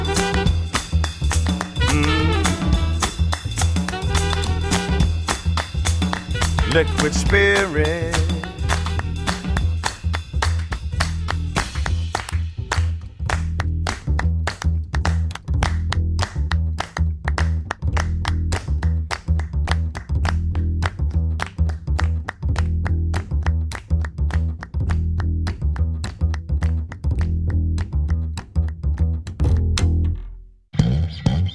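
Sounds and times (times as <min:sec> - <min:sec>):
loud musical backing of a song: 0:00.0 - 0:13.0
people clapping along to the rhythm of a song: 0:00.0 - 0:30.0
speech: 0:06.8 - 0:08.3.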